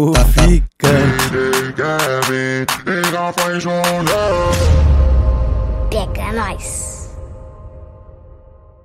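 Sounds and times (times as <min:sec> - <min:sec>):
sertanejo music: 0:00.2 - 0:05.6.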